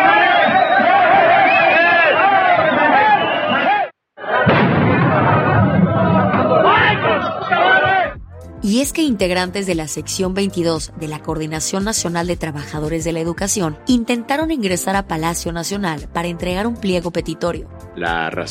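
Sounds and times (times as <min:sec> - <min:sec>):
protesting crowd shouting and chanting: 0:00.0 - 0:08.5
speech: 0:08.6 - 0:18.4.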